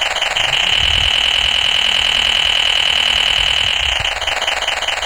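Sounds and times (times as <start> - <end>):
diesel engine: 0.2 - 4.9.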